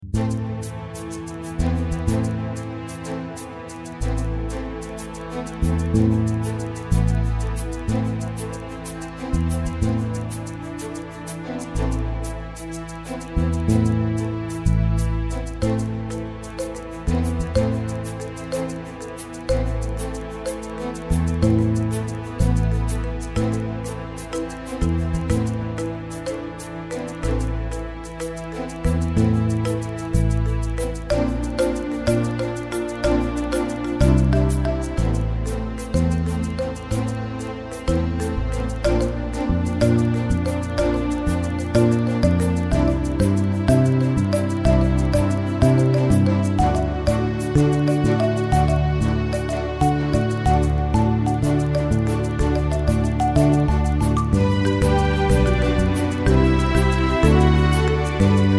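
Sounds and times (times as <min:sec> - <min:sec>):
strings: 0:00.0 - 0:58.5.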